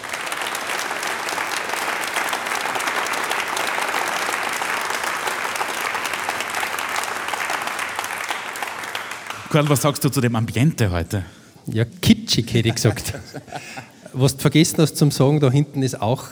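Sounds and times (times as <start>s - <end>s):
audience applause: 0.0s - 10.0s
speech: 9.5s - 16.2s
laughter: 12.2s - 15.6s.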